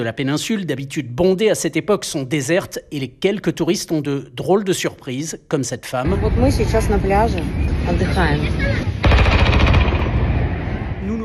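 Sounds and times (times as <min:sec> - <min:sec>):
speech: 0:00.0 - 0:09.0
heavy weapons firing at drones: 0:09.0 - 0:10.6.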